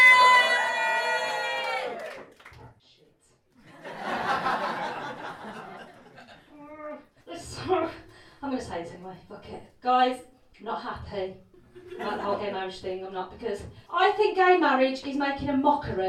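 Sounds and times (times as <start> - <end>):
audience cheering: 0.0 - 2.5
laughter: 3.6 - 6.7, 11.7 - 12.6
speech: 9.1 - 11.4, 12.2 - 16.0.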